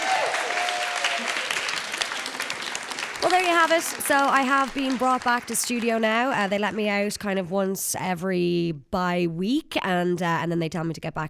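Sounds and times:
crowd applauding: 0:00.0 - 0:06.9
speech: 0:03.2 - 0:11.2.

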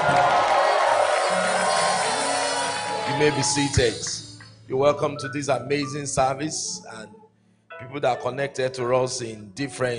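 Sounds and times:
church congregation shouting praise at a Sunday service: 0:00.0 - 0:04.2
speech: 0:03.2 - 0:07.2, 0:07.8 - 0:09.9.

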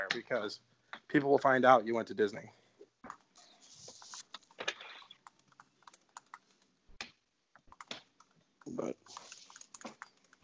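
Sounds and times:
speech: 0:00.1 - 0:03.2, 0:08.7 - 0:09.2
typing on a computer keyboard writing an essay: 0:03.0 - 0:10.4.

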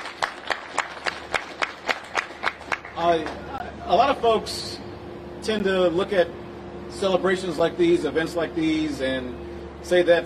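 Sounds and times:
audience applause: 0:00.0 - 0:03.5
speech: 0:03.0 - 0:04.8, 0:05.4 - 0:10.2.

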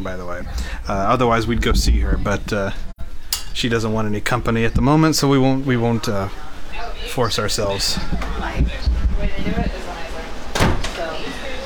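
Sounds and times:
speech: 0:00.0 - 0:02.9, 0:03.6 - 0:09.9
house door slammed shut: 0:10.5 - 0:11.1.

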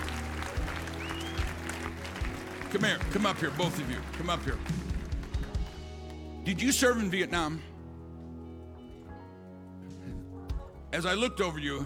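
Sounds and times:
audience clapping in praise: 0:00.0 - 0:06.3
speech: 0:02.7 - 0:05.0, 0:06.4 - 0:07.7, 0:10.9 - 0:11.8.

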